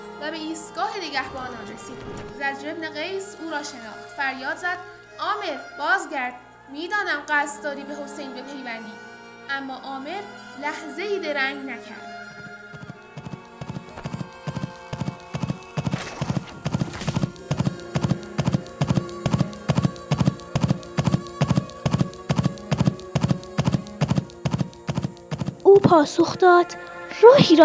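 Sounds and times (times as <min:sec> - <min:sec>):
faint hiss: 0:00.0 - 0:27.6
speech: 0:00.2 - 0:12.1, 0:25.8 - 0:27.6
rustling noise: 0:01.2 - 0:02.8, 0:13.2 - 0:25.7
horse hooves clip-clopping: 0:12.7 - 0:26.0.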